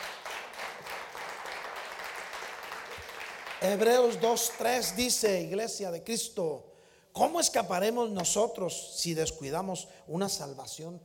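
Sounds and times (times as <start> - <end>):
audience applauding: 0.0 - 5.2
speech: 3.6 - 11.0.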